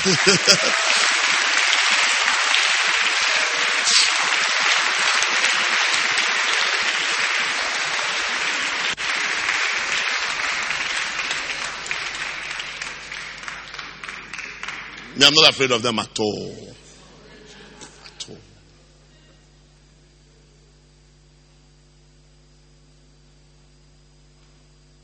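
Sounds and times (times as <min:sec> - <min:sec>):
speech: 0:00.0 - 0:01.1, 0:15.2 - 0:16.8
laughter: 0:00.0 - 0:02.5, 0:16.8 - 0:18.4
audience clapping: 0:00.0 - 0:16.7.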